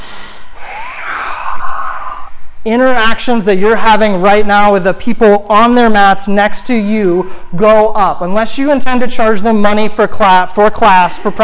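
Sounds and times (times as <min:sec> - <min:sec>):
breathing in and out during a yoga class: 0:00.0 - 0:02.7, 0:07.2 - 0:07.5
speech: 0:02.6 - 0:11.4.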